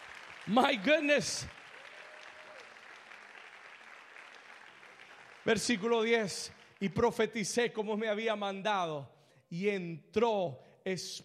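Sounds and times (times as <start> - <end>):
audience applause: 0.0 - 7.0
speech: 0.5 - 1.6, 5.5 - 11.2.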